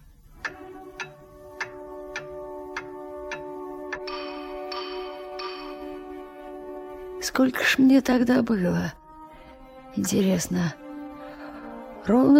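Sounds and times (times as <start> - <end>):
pendulum clock ticking: 0.0 - 7.3
speech: 7.2 - 9.0, 10.0 - 10.8, 12.0 - 12.3.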